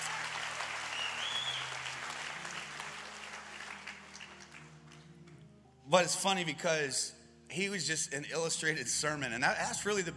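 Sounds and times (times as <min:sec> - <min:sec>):
audience applause: 0:00.0 - 0:05.0
faint whistle: 0:00.9 - 0:01.7
speech: 0:05.9 - 0:10.1.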